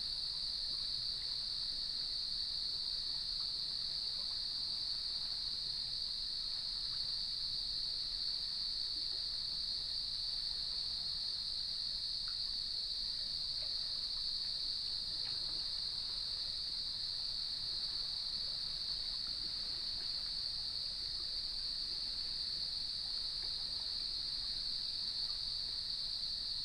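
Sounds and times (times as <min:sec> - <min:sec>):
many crickets trilling: 0:00.0 - 0:26.6.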